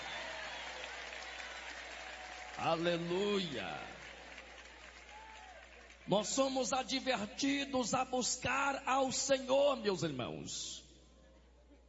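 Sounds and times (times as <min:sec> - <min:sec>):
audience applause: 0:00.0 - 0:06.1
speech: 0:02.6 - 0:04.0, 0:06.1 - 0:10.8.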